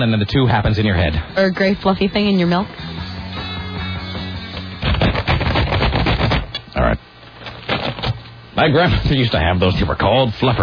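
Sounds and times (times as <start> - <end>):
speech: 0.0 - 3.1, 8.6 - 10.6
steady tonal musical bed: 1.5 - 5.5
paper rattling: 4.6 - 6.5, 7.4 - 8.2.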